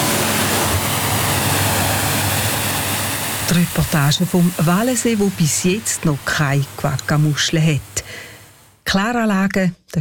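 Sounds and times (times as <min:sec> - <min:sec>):
spraying water to wash down a motorboat: 0:00.0 - 0:08.7
speech: 0:03.5 - 0:08.3, 0:08.9 - 0:10.0.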